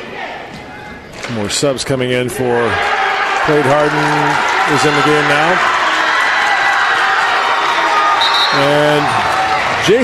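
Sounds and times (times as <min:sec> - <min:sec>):
speech: 0:01.3 - 0:05.8, 0:08.6 - 0:10.0
crowd cheering at a basketball game as a substitute enters: 0:02.4 - 0:10.0.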